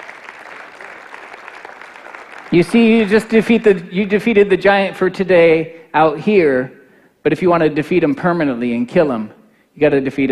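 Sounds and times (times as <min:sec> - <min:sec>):
audience hand clapping: 0:00.0 - 0:03.2
speech: 0:02.5 - 0:10.3.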